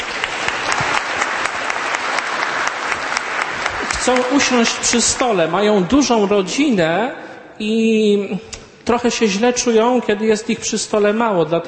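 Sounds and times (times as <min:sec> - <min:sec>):
audience applause: 0:00.0 - 0:05.5
speech: 0:04.0 - 0:11.6.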